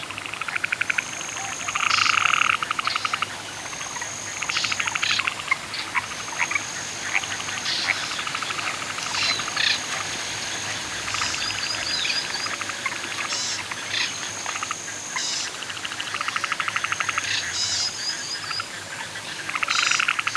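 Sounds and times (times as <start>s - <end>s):
canoeing on a lake at night: 0.0s - 13.3s
nature sounds at a lake at night: 0.0s - 20.3s.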